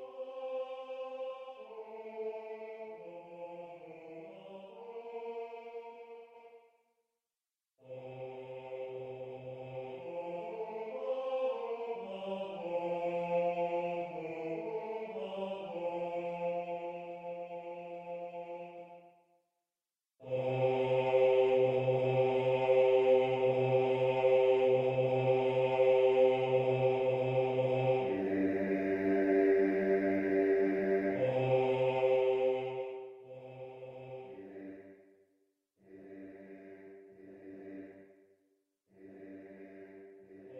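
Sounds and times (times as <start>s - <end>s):
bass section of a choir singing: 0.0s - 6.4s, 7.9s - 18.9s, 20.2s - 34.9s.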